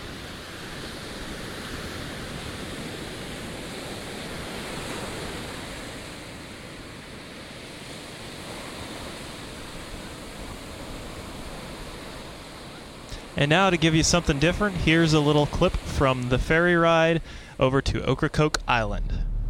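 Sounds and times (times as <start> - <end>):
ocean waves breaking on the shore off the Outer Banks: 0.0 - 19.4
speech: 13.4 - 19.2.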